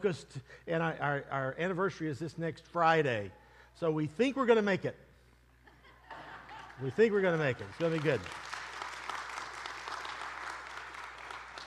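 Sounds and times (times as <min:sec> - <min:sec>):
speech: 0:00.0 - 0:05.1, 0:06.8 - 0:08.5
laughter: 0:05.6 - 0:07.2
audience clapping: 0:07.3 - 0:11.6.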